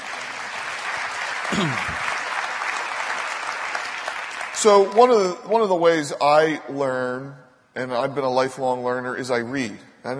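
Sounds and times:
audience clapping: 0:00.0 - 0:05.4
speech: 0:01.6 - 0:02.1, 0:04.6 - 0:10.1.

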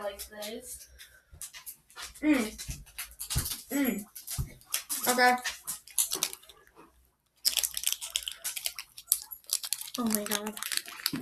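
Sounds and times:
speech: 0:00.2 - 0:01.6, 0:02.2 - 0:02.9, 0:03.7 - 0:04.2, 0:05.0 - 0:05.6, 0:10.0 - 0:11.1
chewing fruit snacks: 0:03.1 - 0:11.1.

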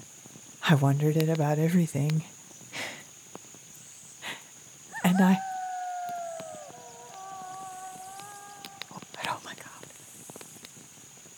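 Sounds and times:
speech: 0:00.7 - 0:02.4, 0:05.2 - 0:05.5
wolf howling: 0:04.9 - 0:09.2.

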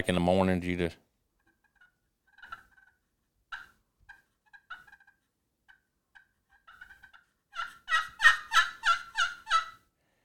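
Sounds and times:
speech: 0:00.0 - 0:01.1
turkey yelps on glass pot call: 0:03.5 - 0:09.8.

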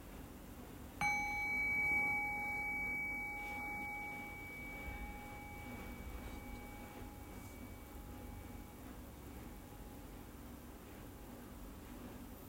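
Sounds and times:
meditation bell ringing: 0:01.0 - 0:10.4.

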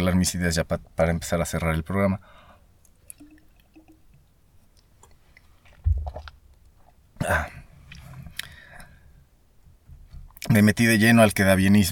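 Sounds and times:
speech: 0:00.1 - 0:02.4, 0:07.2 - 0:07.6, 0:10.5 - 0:11.8
person sipping water: 0:02.8 - 0:04.2.

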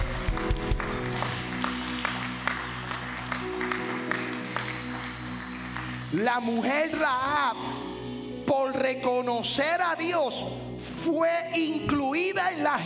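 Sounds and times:
audience applause: 0:00.0 - 0:06.2
speech: 0:06.2 - 0:07.8, 0:08.5 - 0:12.8.

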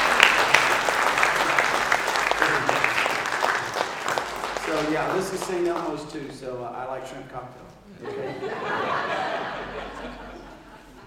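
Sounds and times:
laughter: 0:00.0 - 0:04.0, 0:07.9 - 0:11.0
audience clapping: 0:00.0 - 0:06.3
speech: 0:04.8 - 0:09.4.

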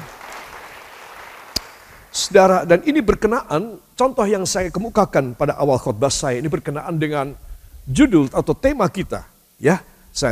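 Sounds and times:
audience applause: 0:00.0 - 0:02.2
speech: 0:02.2 - 0:10.3.

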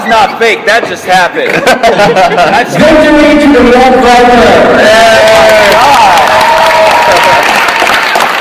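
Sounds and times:
speech: 0:00.2 - 0:06.0
laughter: 0:01.3 - 0:03.0
applause: 0:05.1 - 0:08.3.

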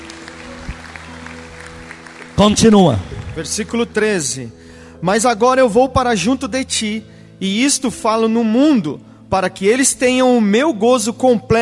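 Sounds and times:
audience applauding: 0:00.0 - 0:04.0
low musical drone: 0:00.0 - 0:10.2
speech: 0:02.4 - 0:11.6.

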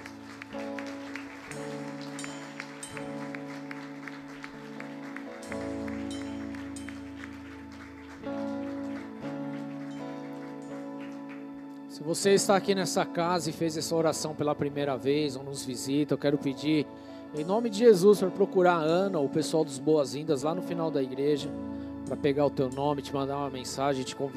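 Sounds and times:
audience applauding: 0:00.0 - 0:12.4
speech: 0:12.0 - 0:24.3.

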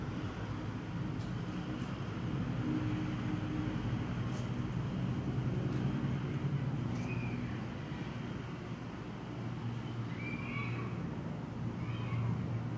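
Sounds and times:
steady low hum and rumble from a home window: 0:00.0 - 0:12.7.

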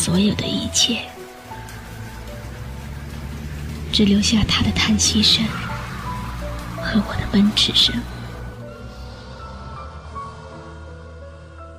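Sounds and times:
speech: 0:00.0 - 0:01.2, 0:03.9 - 0:05.6, 0:06.9 - 0:08.1
steady pattering rain: 0:00.0 - 0:10.0
low droning rumble: 0:00.0 - 0:11.7.

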